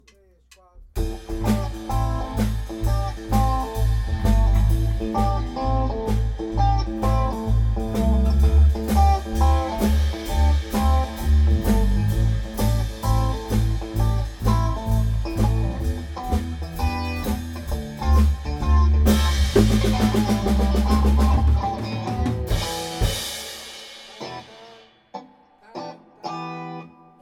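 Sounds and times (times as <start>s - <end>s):
blues music: 0.0s - 27.2s.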